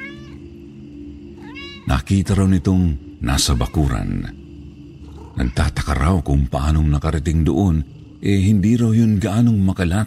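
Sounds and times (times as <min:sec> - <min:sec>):
cat crying: 0:00.0 - 0:00.7, 0:01.3 - 0:02.0, 0:03.3 - 0:04.4, 0:05.0 - 0:06.0
speech: 0:01.9 - 0:04.4, 0:05.4 - 0:10.0.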